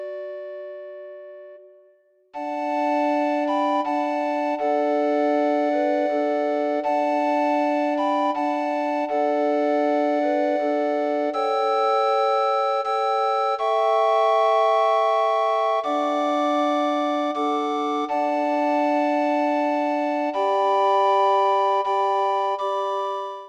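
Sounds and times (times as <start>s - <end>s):
recorder ensemble: 2.4s - 23.4s.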